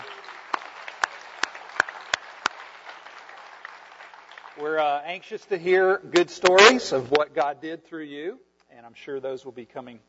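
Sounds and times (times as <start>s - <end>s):
crowd applauding returning mission team indoors: 0.0s - 5.0s
speech: 4.6s - 10.0s.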